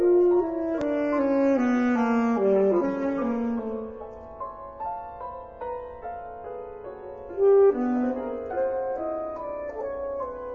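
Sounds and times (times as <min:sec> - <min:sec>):
saxophone sonata: 0:00.0 - 0:04.1, 0:07.3 - 0:10.5.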